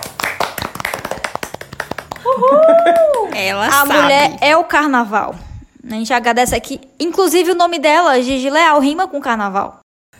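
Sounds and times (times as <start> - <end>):
clapping: 0.0 - 3.9
speech: 2.4 - 10.1.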